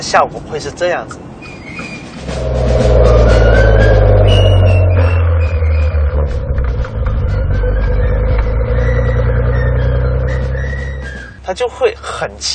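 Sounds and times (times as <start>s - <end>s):
speech: 0.0s - 1.3s, 11.5s - 12.5s
Maserati engine revving while downshifting at lights: 2.2s - 11.3s.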